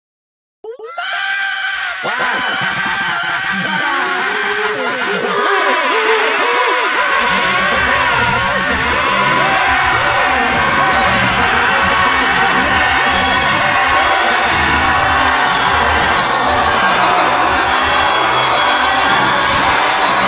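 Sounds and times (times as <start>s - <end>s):
laughter: 0.8s - 20.2s
person screaming: 0.8s - 20.2s.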